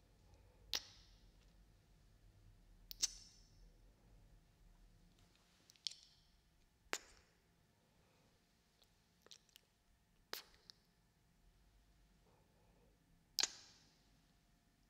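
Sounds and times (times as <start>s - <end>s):
faint low hum: 0.0s - 14.8s
sharp wet kiss sounds: 2.9s - 3.3s, 13.4s - 13.8s.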